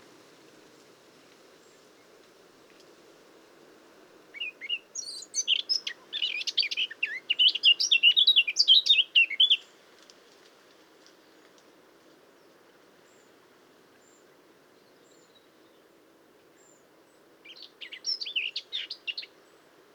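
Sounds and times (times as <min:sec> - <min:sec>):
Eurasian blackcap singing: 0:04.4 - 0:09.6, 0:17.5 - 0:19.3.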